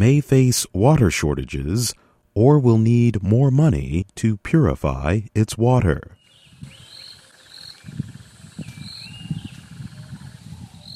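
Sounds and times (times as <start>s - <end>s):
speech: 0.0s - 6.7s
wildlife sounds in a wetland near Harare: 6.1s - 10.9s.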